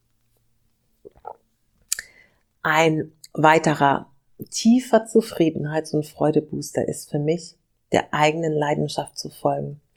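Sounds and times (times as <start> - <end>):
person taking a sip of water: 1.0 - 2.2
speech: 2.6 - 9.8.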